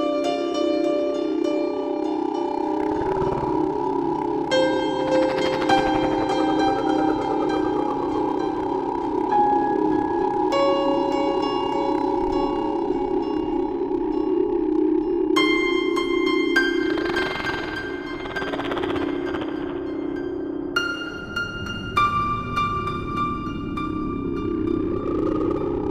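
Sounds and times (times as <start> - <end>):
creepy music: 0.0 - 25.8.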